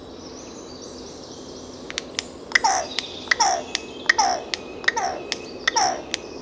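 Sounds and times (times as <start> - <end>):
Carrion crow Corvus corone giving harsh descending caws: 1.9 - 6.2.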